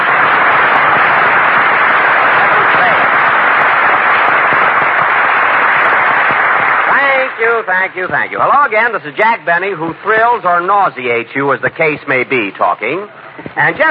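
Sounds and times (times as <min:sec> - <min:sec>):
studio audience applause: 0:00.0 - 0:09.0
speech: 0:07.6 - 0:13.8.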